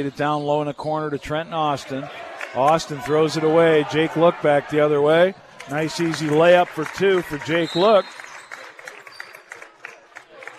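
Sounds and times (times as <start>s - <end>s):
speech: 0.0s - 8.2s
basketball crowd cheering and applauding after a layup: 2.2s - 10.5s.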